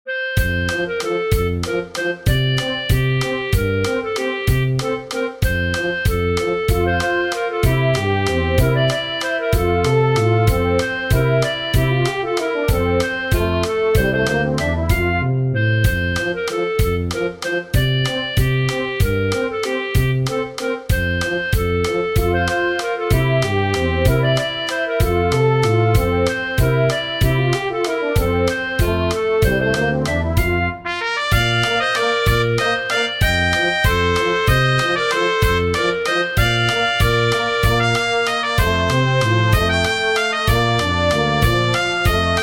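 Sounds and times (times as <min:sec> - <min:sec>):
zwiefacher folk dance music: 0:00.1 - 0:42.4.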